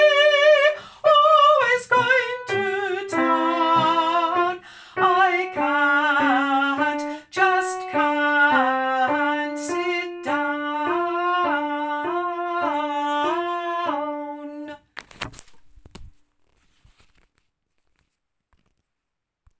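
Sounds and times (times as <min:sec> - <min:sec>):
soprano singing: 0:00.0 - 0:14.8.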